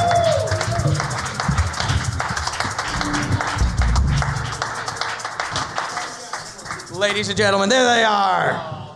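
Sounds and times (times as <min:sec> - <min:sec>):
people whooping: 0:00.0 - 0:06.8
audience clapping for arriving guests: 0:00.0 - 0:07.7
speech: 0:07.0 - 0:08.7.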